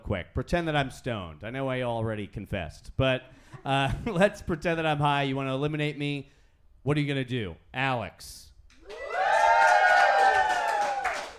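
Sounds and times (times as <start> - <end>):
speech: 0.1 - 8.5
audience cheering loudly: 8.8 - 11.3.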